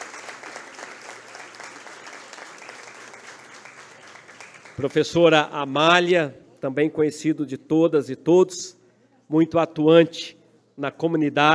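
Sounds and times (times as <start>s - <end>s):
audience applause: 0.0s - 4.9s
speech: 4.8s - 11.5s.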